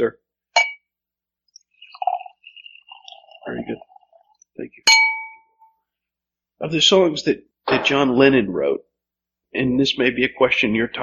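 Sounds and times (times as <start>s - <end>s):
speech: 0.0s - 0.2s, 4.6s - 5.2s, 6.6s - 8.9s, 9.5s - 11.0s
glass clink: 0.6s - 0.9s, 4.9s - 5.8s
liquid poured into a glass: 1.5s - 5.6s.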